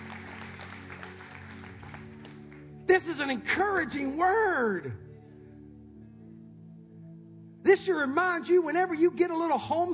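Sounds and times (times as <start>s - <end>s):
audience clapping: 0.0s - 2.8s
speech: 3.0s - 5.0s, 7.7s - 9.9s.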